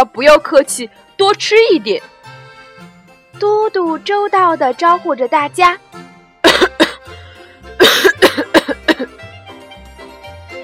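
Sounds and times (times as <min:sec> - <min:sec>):
speech: 0:00.1 - 0:02.1, 0:03.4 - 0:05.9
coughing: 0:06.4 - 0:07.1, 0:07.8 - 0:09.2.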